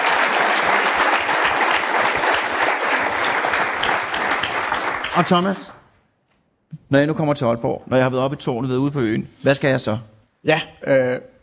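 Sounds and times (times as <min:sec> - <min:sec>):
applause: 0:00.0 - 0:05.9
speech: 0:05.2 - 0:05.8, 0:06.9 - 0:11.3.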